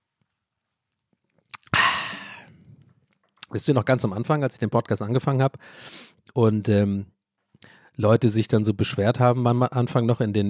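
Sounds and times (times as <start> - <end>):
person drinking a sip of water: 1.4 - 3.2
speech: 3.5 - 10.4.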